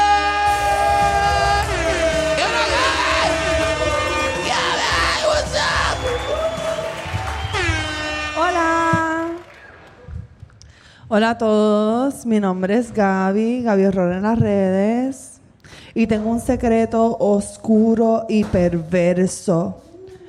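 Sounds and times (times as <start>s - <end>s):
audience applause and cheering: 0.0s - 10.4s
speech: 11.1s - 15.3s, 16.0s - 19.8s.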